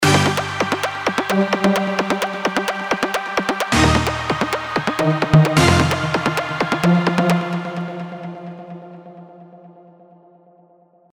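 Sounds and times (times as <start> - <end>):
EDM intro filler: 0.0 - 8.3.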